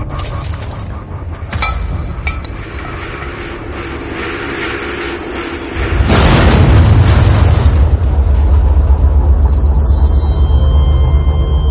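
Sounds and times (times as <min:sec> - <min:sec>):
bomb exploding beside a car: 0:03.4 - 0:11.6.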